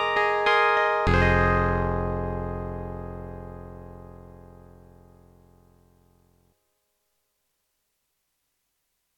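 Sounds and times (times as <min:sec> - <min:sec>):
Yamaha MU1000EX synthesizer clavinet: 0:00.0 - 0:04.6.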